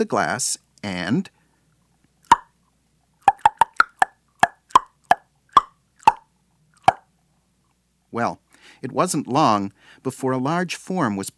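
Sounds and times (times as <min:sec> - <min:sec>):
speech: 0:00.0 - 0:01.4, 0:08.1 - 0:11.3
tongue clicks imitating a killer whale: 0:02.2 - 0:02.5, 0:03.2 - 0:07.0.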